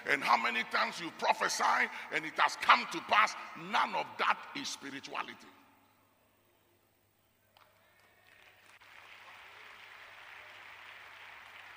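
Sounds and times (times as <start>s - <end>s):
speech: 0.1s - 5.6s
audience clapping: 7.6s - 11.7s.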